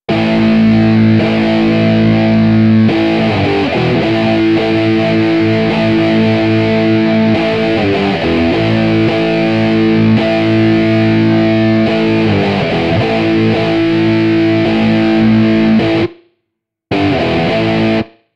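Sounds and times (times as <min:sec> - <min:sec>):
dub guitar: 0:00.0 - 0:16.3, 0:16.9 - 0:18.3.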